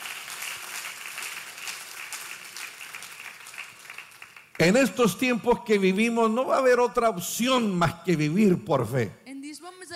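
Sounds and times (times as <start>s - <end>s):
audience applause: 0.0s - 5.0s
speech: 4.6s - 9.2s.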